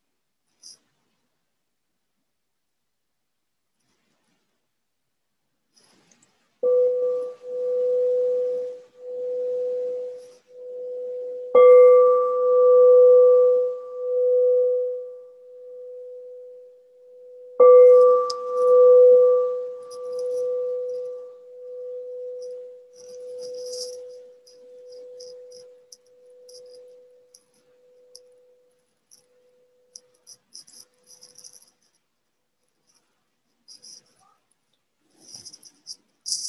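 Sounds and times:
meditation bell ringing: 6.6 - 31.7.

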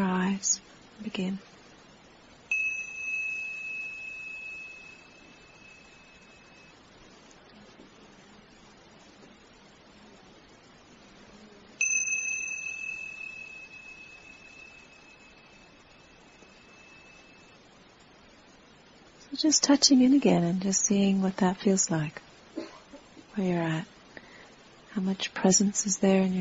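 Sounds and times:
soft steady hiss: 0.0 - 26.3
speech: 0.4 - 1.5, 19.4 - 22.2, 23.4 - 23.9, 25.0 - 26.3
meditation bell ringing: 2.5 - 7.0, 11.8 - 17.8.

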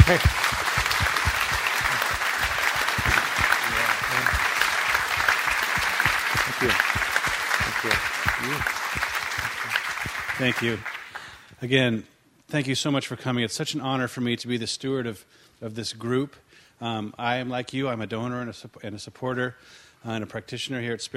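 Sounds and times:
audience round of applause: 0.0 - 11.4
speech: 0.1 - 0.4, 6.6 - 7.0, 10.4 - 10.9, 11.6 - 21.1.

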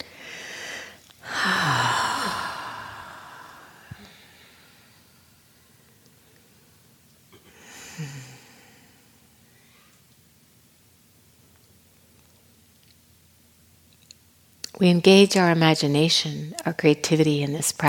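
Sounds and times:
deep breathing during a guided meditation at a Spirit Rock retreat: 0.0 - 5.3, 7.4 - 10.0
speech: 14.8 - 17.8.

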